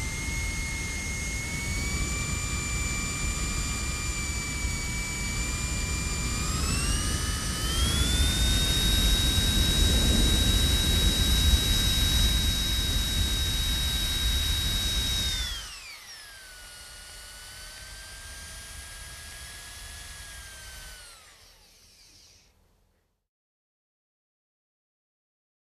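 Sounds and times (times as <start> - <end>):
device blowing air: 0.0 - 16.0.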